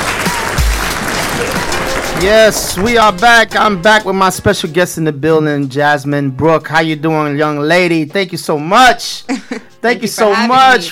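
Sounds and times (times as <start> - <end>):
applause: 0.0 - 3.3
speech: 2.2 - 10.9.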